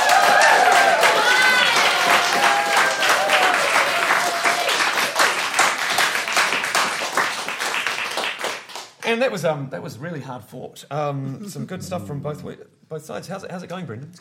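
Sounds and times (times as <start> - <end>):
whoops and cheers: 0.0 - 5.1
audience applause: 0.0 - 9.0
speech: 9.1 - 14.1.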